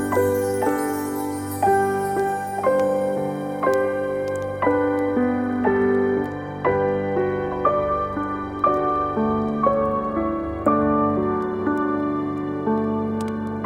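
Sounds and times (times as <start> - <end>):
relaxing Christmas on-hold music: 0.0 - 13.6.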